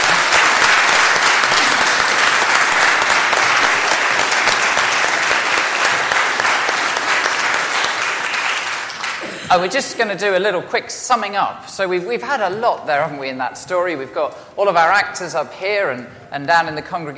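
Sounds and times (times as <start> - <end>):
audience applause: 0.0 - 9.5
speech: 9.5 - 17.1.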